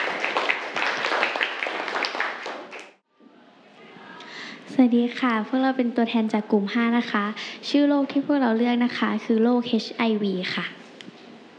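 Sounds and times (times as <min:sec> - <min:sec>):
students applauding: 0:00.0 - 0:03.0
speech: 0:04.8 - 0:10.8.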